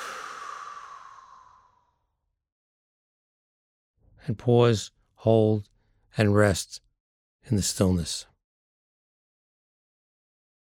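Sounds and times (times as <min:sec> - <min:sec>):
deep breath blown out: 0:00.0 - 0:02.0
speech: 0:04.2 - 0:08.3.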